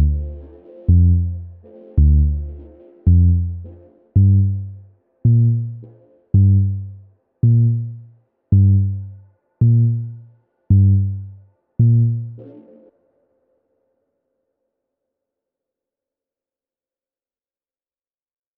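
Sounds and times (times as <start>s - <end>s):
slow bass: 0.0s - 12.5s.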